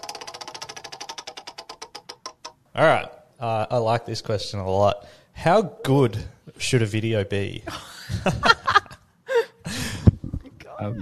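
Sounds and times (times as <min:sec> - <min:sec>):
prize wheel spinning with ratcheting clicks: 0:00.0 - 0:02.6
speech: 0:02.8 - 0:08.6
laughter: 0:07.7 - 0:10.0.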